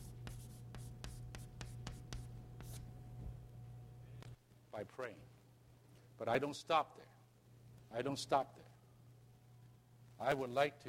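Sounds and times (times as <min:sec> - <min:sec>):
writing on a board: 0:00.0 - 0:02.9
low steady hum: 0:00.0 - 0:10.8
speech: 0:04.8 - 0:05.4, 0:06.2 - 0:07.2, 0:07.9 - 0:08.7, 0:10.2 - 0:10.8.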